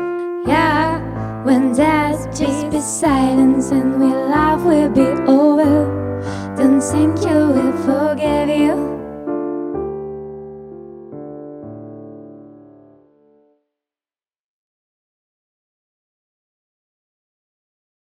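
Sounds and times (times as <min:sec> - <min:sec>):
song in C major: 0:00.0 - 0:13.0.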